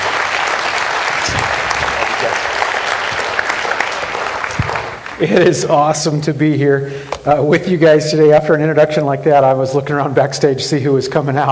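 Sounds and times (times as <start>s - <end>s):
church audience applause welcoming a guest speaker: 0.0s - 5.6s
speech: 5.2s - 11.5s.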